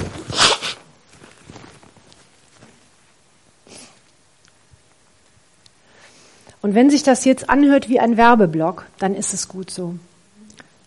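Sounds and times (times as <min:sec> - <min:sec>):
person blowing nose: 0:00.0 - 0:00.9, 0:03.6 - 0:04.0
speech: 0:06.6 - 0:10.1.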